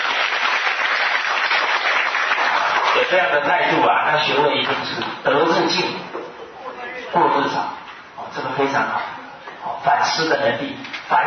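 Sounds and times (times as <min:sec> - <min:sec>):
lecture audience applause: 0:00.0 - 0:03.4
speech: 0:03.1 - 0:06.2, 0:07.1 - 0:09.2, 0:09.8 - 0:11.2.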